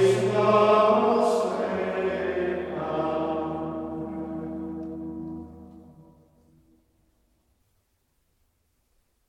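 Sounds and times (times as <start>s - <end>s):
Gregorian chant antiphon: 0.0s - 4.8s.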